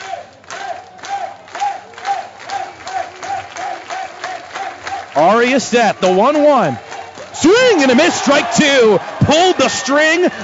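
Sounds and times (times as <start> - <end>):
big stadium crowd roaring: 0.0 - 10.4
speech: 5.2 - 6.8, 7.4 - 10.4.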